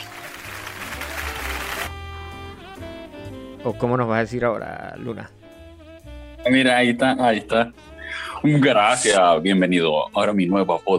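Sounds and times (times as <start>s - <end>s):
clapping: 0.0s - 1.9s
speech: 3.6s - 5.4s, 6.4s - 10.9s.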